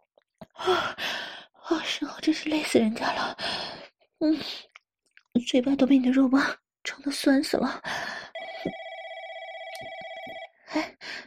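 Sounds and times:
speech: 0.6 - 4.7, 5.4 - 8.8, 10.8 - 11.2
telephone ringing: 8.4 - 10.6.

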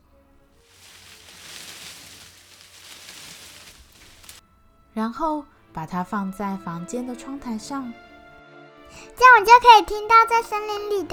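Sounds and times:
leaves rustling: 0.0 - 5.7
speech: 5.0 - 8.1, 8.9 - 11.1.

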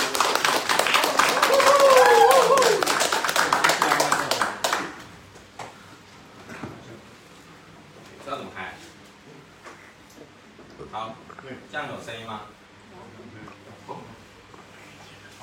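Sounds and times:
audience applause welcoming speaker: 0.0 - 5.0.

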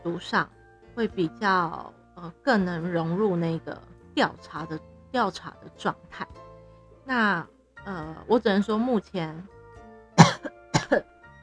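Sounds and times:
speech: 0.0 - 6.4, 7.1 - 9.6, 10.4 - 11.1
cough: 10.2 - 11.1.

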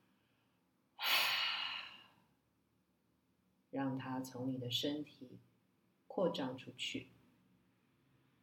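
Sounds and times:
deep breath during a guided inner-child healing meditation: 0.1 - 2.3
speech: 3.7 - 5.5, 6.2 - 7.2.

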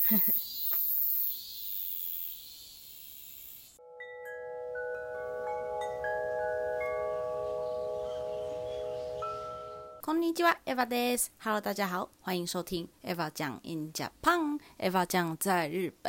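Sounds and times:
cicadas buzzing: 0.0 - 3.8, 4.9 - 10.0
speech: 0.1 - 0.4, 10.1 - 16.0.

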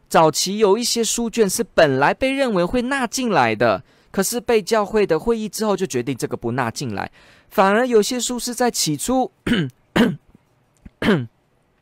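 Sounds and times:
speech: 0.1 - 10.2, 11.0 - 11.3
throat clearing with phlegm in the throat: 9.4 - 11.4.

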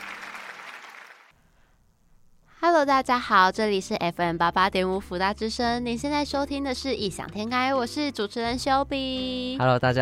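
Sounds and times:
audience applause: 0.0 - 1.3
speech: 2.8 - 10.0.

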